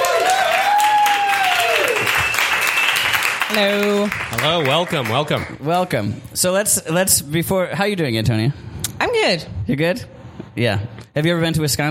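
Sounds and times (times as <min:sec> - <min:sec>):
live comedy audience applause in Berlin welcoming a guest: 0:00.0 - 0:05.6
speech: 0:03.6 - 0:11.8.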